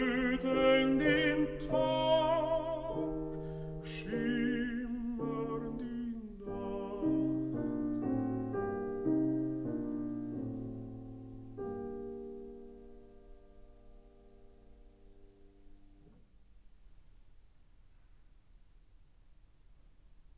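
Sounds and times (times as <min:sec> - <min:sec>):
person singing: 0:00.0 - 0:08.2
piano: 0:00.0 - 0:20.3.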